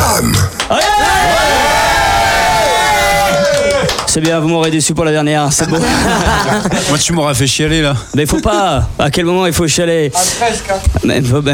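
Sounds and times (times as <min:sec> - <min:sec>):
live audience cheering at a farewell show: 0:00.6 - 0:04.5
speech: 0:04.2 - 0:11.5
laughter: 0:05.5 - 0:07.5.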